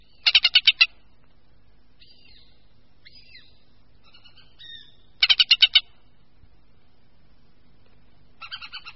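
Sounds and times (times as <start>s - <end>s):
hen harrier chattering calls: 0.0s - 1.0s, 3.1s - 6.0s, 8.4s - 8.9s.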